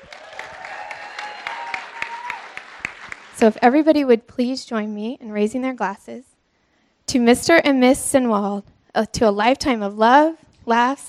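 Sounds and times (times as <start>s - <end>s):
audience applause: 0.0s - 3.4s
speech: 3.4s - 6.3s, 7.1s - 11.0s.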